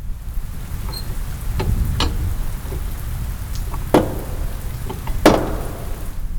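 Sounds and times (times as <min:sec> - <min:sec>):
steady hissing noise: 0:00.0 - 0:06.3
heavy door knocker knocking, echoing through hall: 0:03.8 - 0:06.1.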